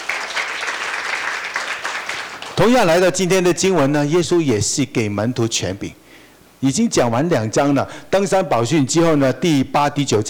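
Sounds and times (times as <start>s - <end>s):
church congregation applauding in worship: 0.0s - 3.2s
speech: 2.6s - 6.0s, 6.6s - 10.2s.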